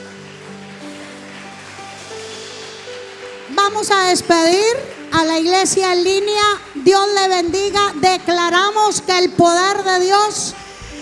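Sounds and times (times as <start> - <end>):
audience applauding: 0.0 - 7.4
speech: 3.5 - 10.6.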